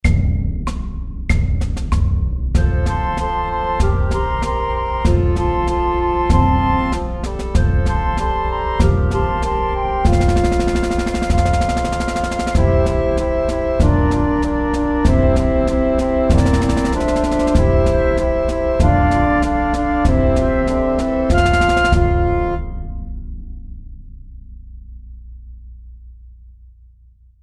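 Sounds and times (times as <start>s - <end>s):
march music: 0.0s - 23.2s.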